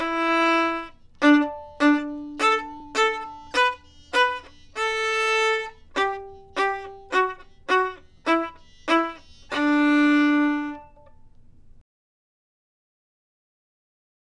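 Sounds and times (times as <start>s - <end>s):
violin melody: 0.0s - 11.3s.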